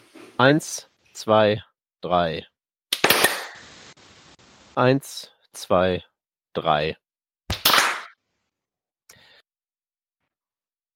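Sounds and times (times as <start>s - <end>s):
speech: 0.4s - 2.5s, 4.8s - 7.0s
hand claps to sync recording start: 7.5s - 8.2s.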